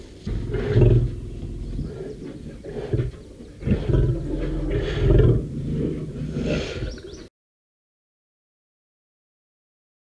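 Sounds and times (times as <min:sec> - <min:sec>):
tiger cub growling: 0:00.0 - 0:07.3.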